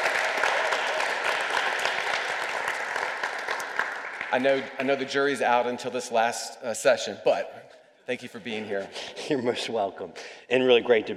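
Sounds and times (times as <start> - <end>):
audience applause: 0.0 - 4.9
speech: 4.3 - 11.1.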